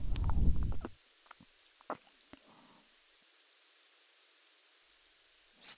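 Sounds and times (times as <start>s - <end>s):
ASMR ear licking sounds: 0.1s - 2.5s.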